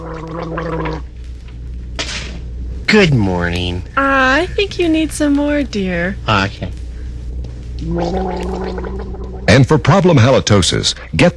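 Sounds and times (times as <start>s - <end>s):
gargling with Wham Wash minty antiseptic mouthwash: 0.0s - 1.1s, 7.8s - 9.6s
speech: 0.2s - 1.1s, 2.9s - 6.8s, 7.8s - 11.3s.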